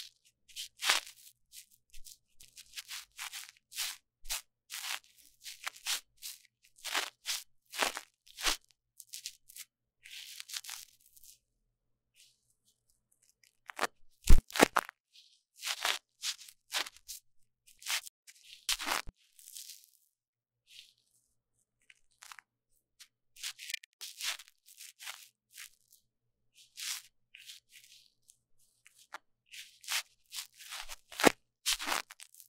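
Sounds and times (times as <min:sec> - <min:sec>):
crackling and scratching of microphone ear cleaning: 0:00.0 - 0:11.4, 0:13.2 - 0:20.1, 0:21.8 - 0:32.4.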